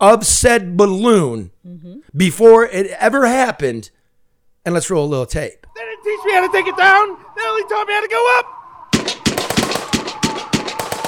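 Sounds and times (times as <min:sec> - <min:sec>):
speech: 0:00.0 - 0:04.0, 0:04.6 - 0:08.6
gunfire shooting at an aircraft: 0:08.9 - 0:11.0.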